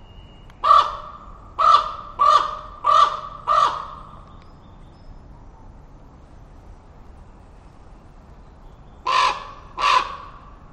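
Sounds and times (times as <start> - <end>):
Common Raven calls: 0.6 - 4.2, 9.1 - 10.4.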